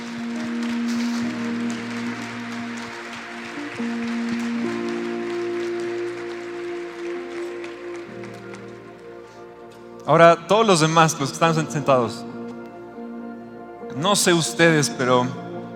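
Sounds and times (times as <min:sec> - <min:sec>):
audience applause: 0:00.0 - 0:09.4
speech: 0:10.1 - 0:12.3, 0:14.0 - 0:15.4.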